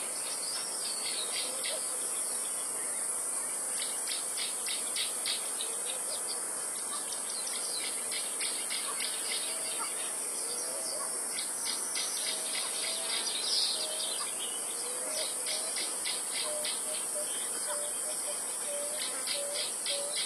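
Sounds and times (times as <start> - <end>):
morning forest ambience: 0.0 - 20.2.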